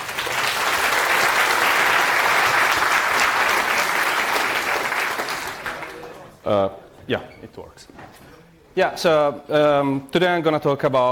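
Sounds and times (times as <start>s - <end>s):
audience applause: 0.0s - 6.2s
speech: 6.5s - 11.1s.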